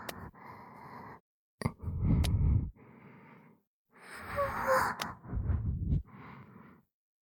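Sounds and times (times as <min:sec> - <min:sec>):
person whispering in ear: 0:01.7 - 0:02.7, 0:04.2 - 0:06.1.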